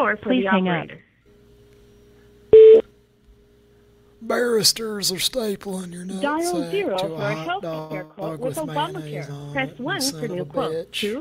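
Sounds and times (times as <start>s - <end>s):
speech: 0.1s - 1.0s, 4.2s - 11.1s
voicemail beep on a telephone answering system: 2.5s - 2.8s.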